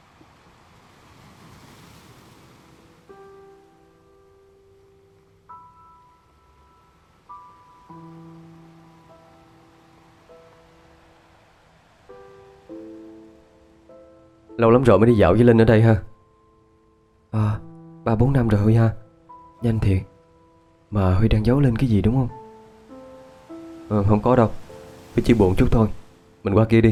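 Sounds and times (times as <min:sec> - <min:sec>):
ocean waves washing onto a beach: 0:00.0 - 0:04.0, 0:04.6 - 0:14.6, 0:21.6 - 0:26.9
gentle melody of sustained notes: 0:02.2 - 0:26.9
speech: 0:14.6 - 0:16.1, 0:18.2 - 0:19.0, 0:19.6 - 0:20.1, 0:20.9 - 0:22.4, 0:23.9 - 0:24.6, 0:25.2 - 0:26.9.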